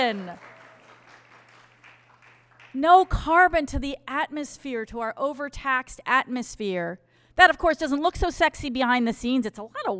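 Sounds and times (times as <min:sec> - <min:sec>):
speech: 0:00.0 - 0:00.5, 0:02.7 - 0:09.9
audience cheering: 0:00.0 - 0:02.7
low electrical hum: 0:00.0 - 0:09.9.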